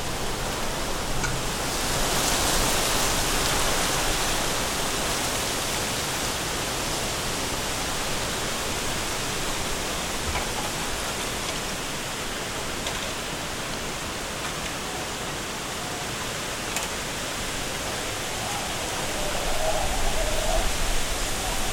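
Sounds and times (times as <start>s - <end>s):
strong wind roaring through a bamboo forest: 0.0s - 21.7s.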